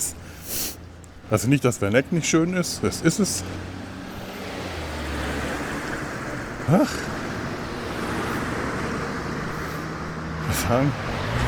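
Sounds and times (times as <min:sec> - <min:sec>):
cars driving past on a road leading out of Werneck: 0:00.2 - 0:11.4
speech: 0:01.3 - 0:03.8, 0:06.7 - 0:07.1, 0:10.7 - 0:11.2.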